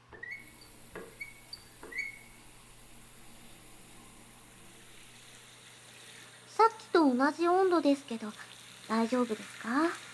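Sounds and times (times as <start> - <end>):
faint high squeaky tones: 0.2 - 2.5
shower water running: 0.2 - 10.1
speech: 6.6 - 10.0.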